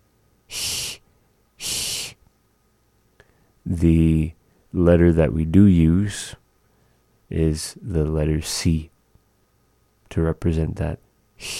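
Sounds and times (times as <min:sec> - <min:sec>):
voice imitating a cat hissing: 0:00.5 - 0:01.0, 0:01.6 - 0:02.2, 0:11.4 - 0:11.5
speech: 0:03.7 - 0:06.4, 0:07.3 - 0:08.9, 0:10.1 - 0:11.5.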